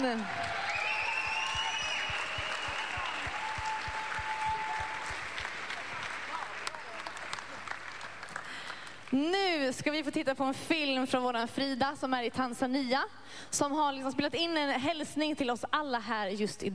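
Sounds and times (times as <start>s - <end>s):
speech: 0.0s - 0.4s, 9.1s - 16.7s
audience applause for a choir: 0.0s - 9.1s.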